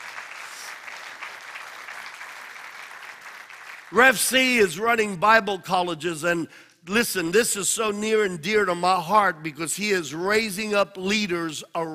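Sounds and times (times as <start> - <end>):
audience applause welcoming a speaker: 0.0 - 4.0
speech: 3.9 - 11.9.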